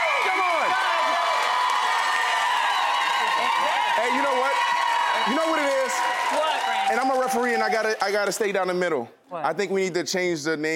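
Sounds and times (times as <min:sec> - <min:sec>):
audience screaming and cheering: 0:00.0 - 0:08.5
speech: 0:05.3 - 0:10.7.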